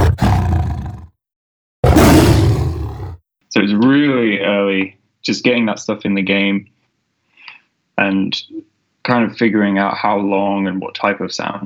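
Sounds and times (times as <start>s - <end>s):
big cat roars of lions and tigers: 0.0s - 1.1s, 1.8s - 3.2s
speech: 3.6s - 6.7s, 8.0s - 11.6s.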